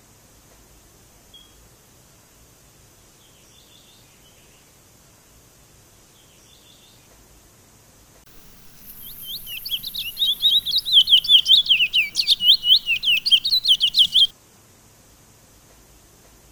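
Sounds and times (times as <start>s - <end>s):
Sunda laughingthrush song of quick high-pitched slurred chirps: 8.3s - 14.3s.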